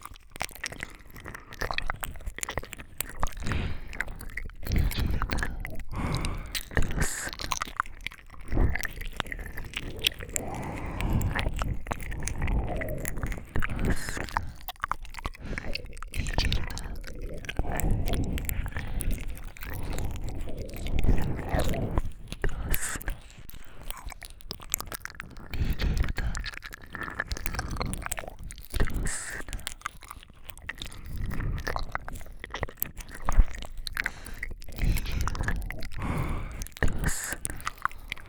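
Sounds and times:
ear licking: 0.0s - 38.2s
person whispering: 3.4s - 7.6s, 8.5s - 14.7s, 15.4s - 24.2s, 28.8s - 29.8s, 34.1s - 38.2s.

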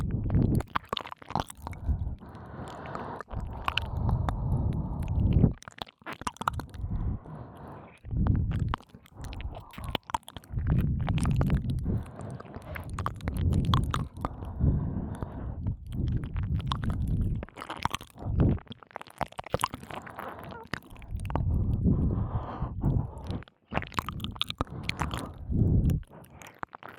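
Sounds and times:
licking both ears: 0.0s - 26.9s
breathing into both ears: 1.8s - 5.3s, 6.8s - 8.0s, 14.3s - 16.2s, 19.9s - 23.5s, 24.6s - 26.6s.

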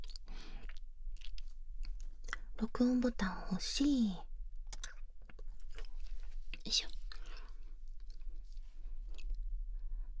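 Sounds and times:
person eating chocolate, crunching and chewing: 0.0s - 2.5s, 4.6s - 9.5s
speech: 2.6s - 4.3s, 6.7s - 6.9s.

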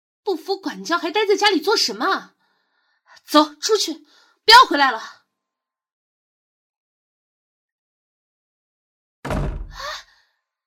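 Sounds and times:
speech: 0.3s - 2.4s, 3.2s - 5.2s
door being slammed shut: 9.2s - 10.0s.

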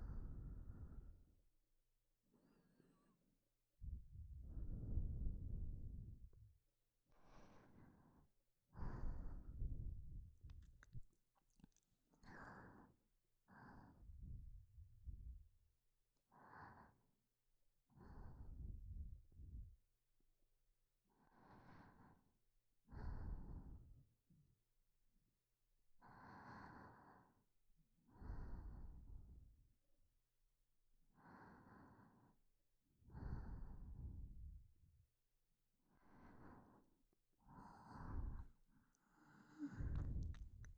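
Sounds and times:
person breathing in sleep: 0.0s - 1.2s, 2.3s - 3.2s, 3.8s - 6.4s, 7.2s - 10.9s, 12.2s - 15.4s, 16.3s - 17.1s, 17.9s - 19.8s, 21.2s - 22.3s, 22.9s - 24.0s, 26.0s - 27.4s, 28.1s - 29.5s, 31.1s - 32.4s, 33.0s - 34.6s, 35.8s - 36.9s, 37.5s - 40.7s.

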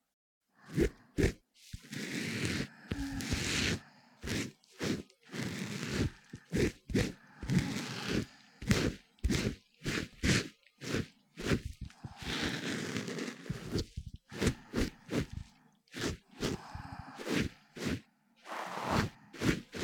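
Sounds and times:
ear cleaning in both ears recorded with binaural microphone: 0.6s - 19.8s.

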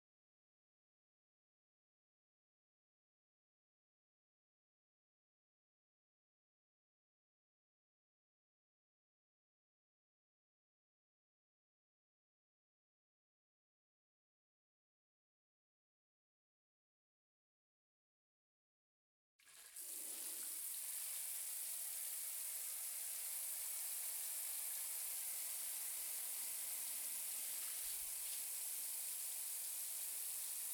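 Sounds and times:
carbonated shampoo fizzing: 19.5s - 30.7s.

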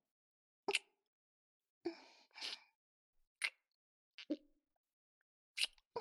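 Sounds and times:
kiss: 0.7s - 0.9s, 3.4s - 3.6s, 5.6s - 5.8s.

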